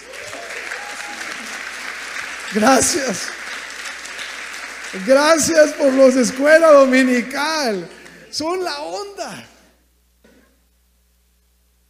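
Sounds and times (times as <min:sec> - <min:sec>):
audience applause: 0:00.0 - 0:09.1
speech: 0:02.5 - 0:03.4, 0:04.9 - 0:09.5.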